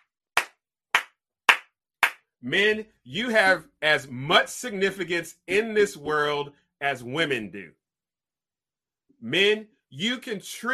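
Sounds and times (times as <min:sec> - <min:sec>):
hand claps: 0:00.0 - 0:02.3
speech: 0:02.4 - 0:07.8, 0:09.2 - 0:10.7.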